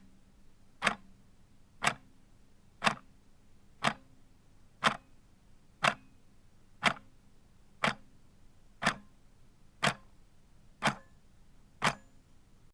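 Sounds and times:
old wall clock ticking: 0.8 - 1.0, 2.8 - 3.0, 3.8 - 4.0, 4.8 - 5.0, 6.8 - 7.0, 7.8 - 8.0, 8.8 - 9.0, 9.8 - 10.0, 10.8 - 11.1, 11.8 - 12.1.

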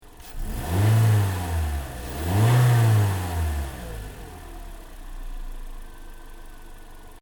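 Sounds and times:
Toyota Corolla hatchback engine revving in engine bay: 0.1 - 5.8.

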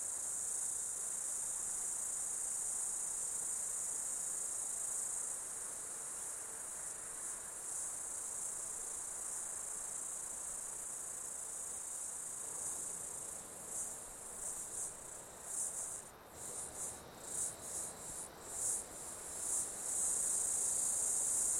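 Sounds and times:
insects calling in a high buzzing chorus during an Australian summer: 0.0 - 21.5.

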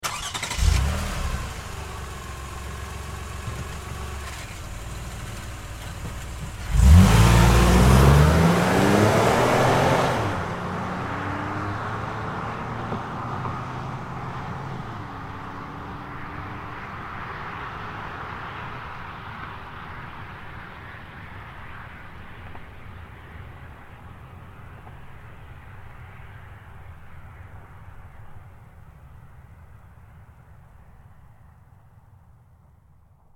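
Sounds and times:
Highlander car starting and driving away fast: 0.0 - 20.8.

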